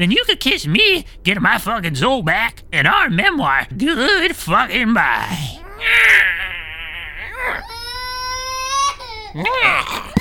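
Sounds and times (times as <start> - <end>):
speech: 0.0 - 6.3, 9.3 - 10.1
infant wailing: 5.2 - 10.1.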